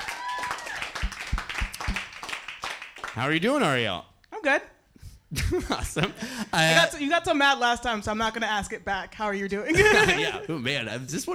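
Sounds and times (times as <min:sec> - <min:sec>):
audience clapping: 0:00.0 - 0:03.4
dull thumps: 0:01.0 - 0:02.2
speech: 0:03.2 - 0:11.3
laughter: 0:05.3 - 0:07.0, 0:09.7 - 0:10.7.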